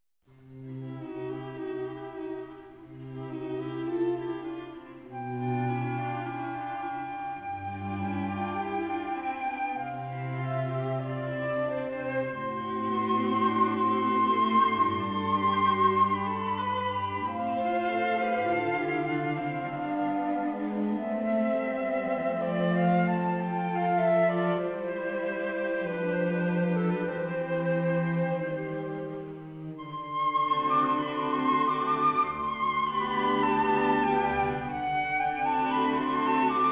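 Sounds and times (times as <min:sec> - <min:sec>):
flute: 0:03.1 - 0:36.7.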